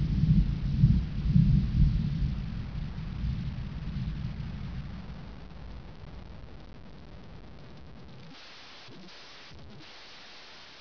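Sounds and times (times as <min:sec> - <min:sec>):
thunder: 0:00.0 - 0:05.8.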